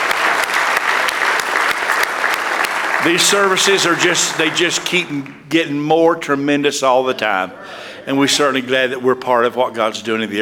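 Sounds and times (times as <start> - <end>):
audience clapping hands in praise: 0.0 - 5.7
speech: 3.0 - 10.4.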